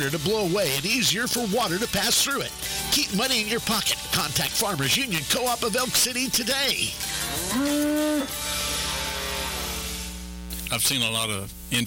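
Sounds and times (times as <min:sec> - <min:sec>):
speech: 0:00.0 - 0:08.5, 0:10.7 - 0:11.8
cow mooing: 0:07.3 - 0:09.8.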